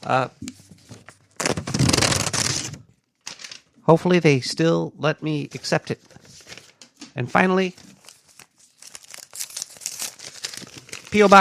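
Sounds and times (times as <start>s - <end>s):
speech: 0.0s - 0.5s, 3.9s - 6.2s, 7.2s - 7.8s, 11.1s - 11.3s
paper and packaging of a fan's mailed package tearing: 1.4s - 3.6s, 7.9s - 11.3s.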